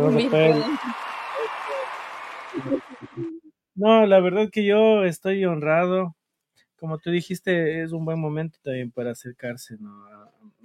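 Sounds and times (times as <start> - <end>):
speech: 0.0 - 1.0, 3.8 - 6.2, 6.8 - 10.6
applause: 0.0 - 3.3.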